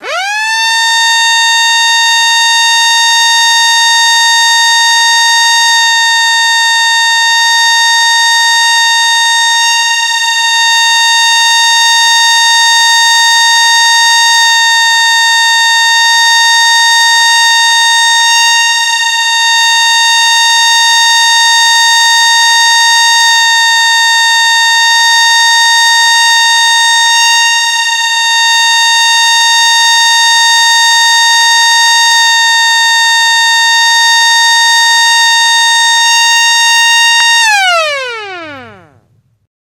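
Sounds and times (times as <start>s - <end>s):
siren: 0.0s - 39.2s.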